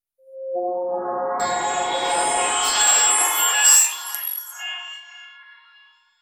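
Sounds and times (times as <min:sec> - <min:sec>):
magical sounds: 0:01.5 - 0:05.1.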